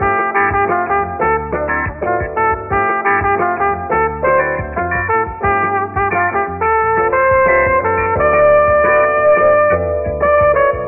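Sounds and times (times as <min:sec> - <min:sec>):
horns: 0:00.0 - 0:10.8.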